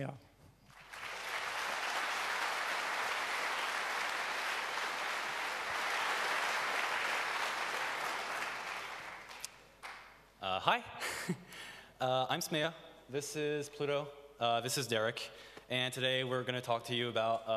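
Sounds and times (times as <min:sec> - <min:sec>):
speech: 0:00.0 - 0:00.2, 0:10.6 - 0:17.5
crowd applauding: 0:00.7 - 0:10.2.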